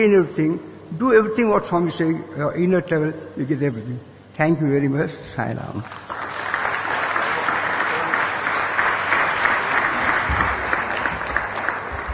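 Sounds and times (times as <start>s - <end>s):
speech: 0.0s - 6.2s
audience applause: 5.9s - 12.1s.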